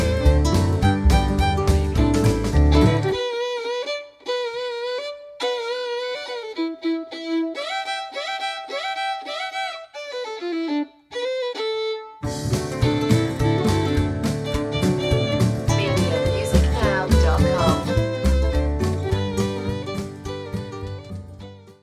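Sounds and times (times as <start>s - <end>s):
slapped bass: 0.0s - 3.2s, 12.2s - 21.8s
grandma playing the fiddle: 0.0s - 21.8s.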